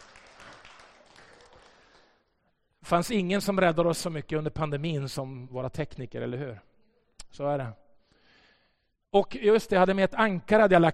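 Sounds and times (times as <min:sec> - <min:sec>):
crowd applauding the technicians: 0:00.0 - 0:02.3
speech: 0:02.9 - 0:06.7, 0:07.3 - 0:07.8, 0:09.1 - 0:10.9.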